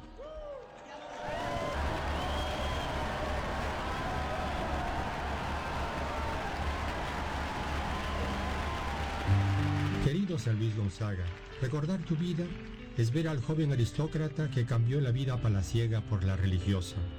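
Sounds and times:
faint cheering voices: 0.1s - 12.6s
audience applause: 0.6s - 13.6s
speech: 10.3s - 17.1s.

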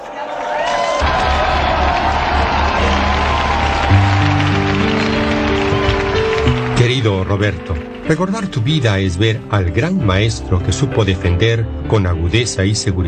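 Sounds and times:
audience applause: 0.0s - 9.2s
speech: 7.0s - 13.0s.

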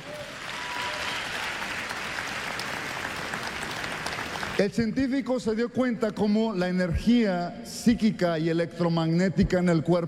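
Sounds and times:
audience applause: 0.0s - 4.6s
speech: 4.6s - 10.0s.

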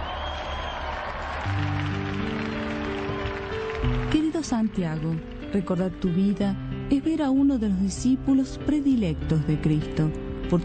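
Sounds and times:
audience applauding: 0.0s - 5.8s
speech: 3.8s - 10.6s.

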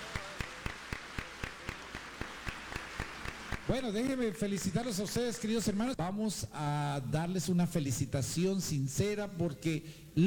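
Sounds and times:
audience applauding: 0.0s - 5.7s
speech: 3.7s - 10.2s.

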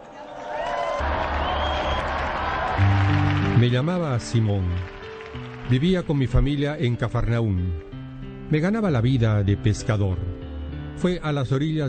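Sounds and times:
audience applause: 0.0s - 7.0s
speech: 2.8s - 7.9s, 8.5s - 10.3s, 11.0s - 11.8s.

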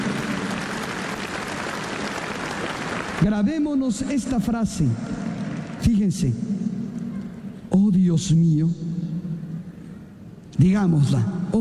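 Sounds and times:
loud applause: 0.0s - 3.8s
speech: 3.2s - 5.2s, 5.8s - 6.6s, 7.7s - 8.9s, 10.6s - 11.6s.

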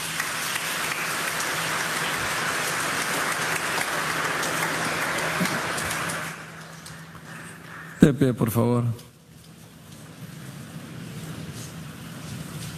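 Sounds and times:
audience applause: 0.0s - 8.0s
speech: 8.1s - 9.1s.

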